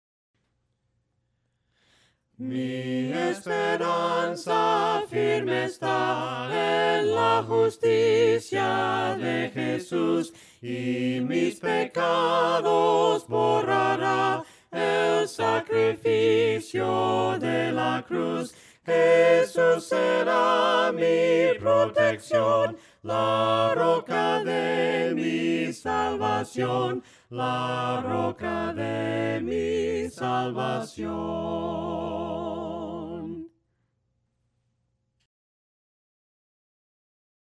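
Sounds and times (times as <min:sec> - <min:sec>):
voices singing hymns a cappella: 0:02.4 - 0:33.5.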